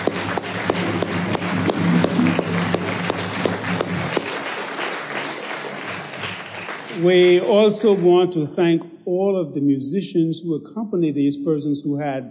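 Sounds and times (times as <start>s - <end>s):
audience applause: 0.0s - 8.5s
speech: 7.0s - 12.2s.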